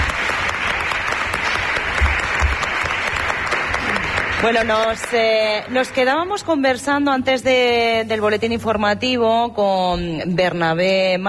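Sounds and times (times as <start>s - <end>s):
audience applause: 0.0s - 6.3s
speech: 4.4s - 11.2s.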